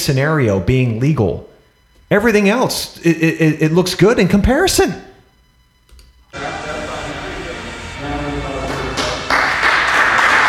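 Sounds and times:
speech: 0.0s - 1.5s, 2.1s - 5.1s
audience clapping: 8.6s - 10.4s.

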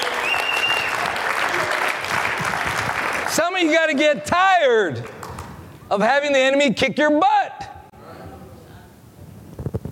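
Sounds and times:
audience clapping applause: 0.0s - 4.2s, 4.9s - 5.6s
speech: 3.6s - 5.2s, 5.9s - 7.4s.

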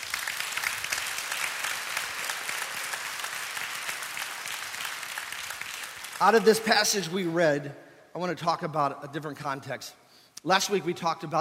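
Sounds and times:
audience applauding: 0.0s - 7.1s
speech: 6.2s - 11.4s.

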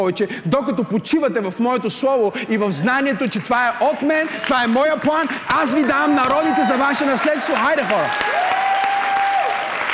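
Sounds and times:
speech: 0.0s - 8.5s
audience applauding: 3.9s - 9.9s.

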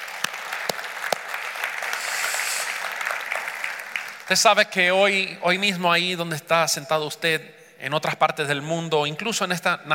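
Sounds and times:
audience applause: 0.0s - 4.3s
speech: 4.3s - 9.9s.

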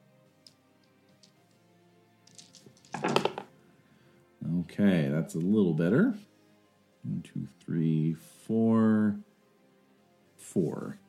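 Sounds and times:
handful of ten dice rattling and clattering: 0.4s - 1.5s, 2.3s - 3.5s
speech: 4.8s - 6.3s, 7.2s - 9.3s, 10.4s - 11.0s.

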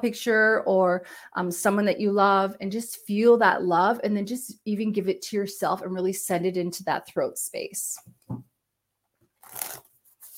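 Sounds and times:
speech: 0.0s - 8.5s
cards being shuffled: 9.4s - 10.3s.

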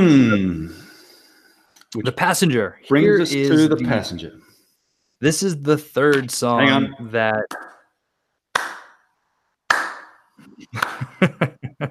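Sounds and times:
speech: 0.0s - 0.8s, 1.9s - 4.5s, 5.2s - 7.6s
hand claps in song: 7.5s - 7.8s, 8.6s - 9.0s, 9.7s - 10.2s, 10.8s - 11.2s
laughter: 10.4s - 11.9s.

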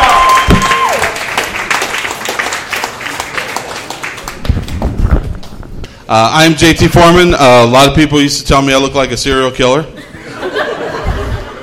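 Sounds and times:
comedy show audience applause for a stand-up comedian: 0.0s - 5.5s
speech: 6.1s - 10.0s
laughter: 9.9s - 11.6s.

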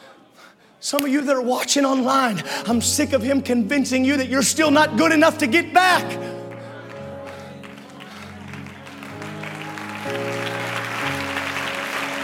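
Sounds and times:
speech: 0.8s - 6.4s
audience applause: 6.0s - 12.2s.

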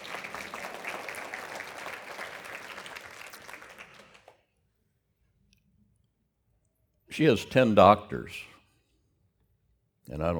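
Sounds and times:
people clapping: 0.0s - 4.6s
speech: 7.2s - 8.5s, 10.1s - 10.3s.

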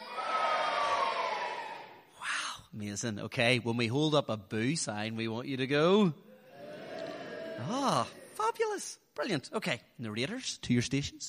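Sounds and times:
audience cheering and whooping: 0.0s - 2.1s, 6.5s - 8.2s
speech: 2.8s - 6.3s, 7.6s - 11.2s.

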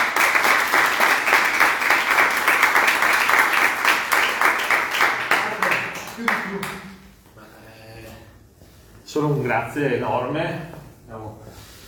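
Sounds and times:
audience applause: 0.0s - 7.0s
speech: 9.2s - 10.8s.

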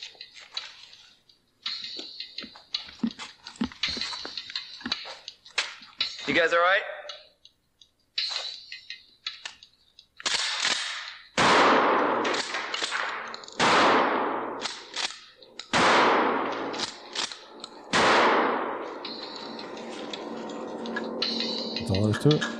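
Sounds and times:
speech: 6.3s - 6.9s, 22.2s - 22.5s
shotgun blasts fired into a piano: 10.3s - 14.9s, 15.7s - 16.8s, 17.9s - 18.8s.

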